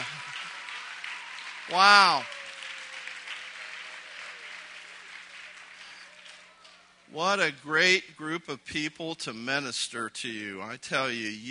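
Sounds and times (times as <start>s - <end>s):
audience applause: 0.0s - 7.1s
speech: 1.7s - 2.4s, 7.1s - 11.5s.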